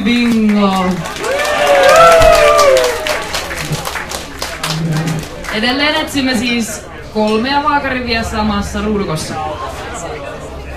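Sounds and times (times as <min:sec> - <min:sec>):
audience clapping at a bar club night: 0:00.0 - 0:06.2
speech: 0:00.1 - 0:01.2, 0:05.6 - 0:09.8
cheers: 0:01.0 - 0:05.2.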